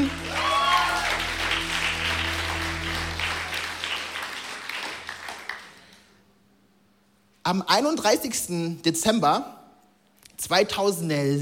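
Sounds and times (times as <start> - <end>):
audience applause: 0.0 - 6.2
speech: 7.5 - 9.6, 10.4 - 11.3.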